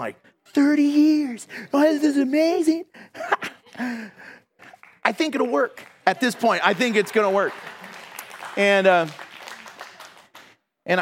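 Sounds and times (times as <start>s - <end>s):
speech: 0.0s - 4.4s, 5.0s - 7.8s, 8.6s - 9.3s, 10.9s - 11.0s
audience clapping: 4.6s - 10.7s.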